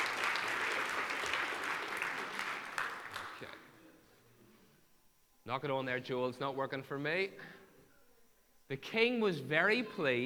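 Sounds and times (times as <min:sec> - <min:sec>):
audience applause: 0:00.0 - 0:03.6
speech: 0:05.5 - 0:07.6, 0:08.7 - 0:10.2.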